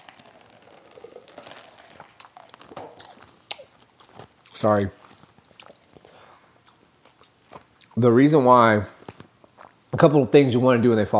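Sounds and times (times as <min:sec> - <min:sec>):
person sipping water: 0:00.0 - 0:08.0, 0:09.0 - 0:09.9
speech: 0:04.6 - 0:05.0, 0:08.0 - 0:09.0, 0:10.0 - 0:11.1.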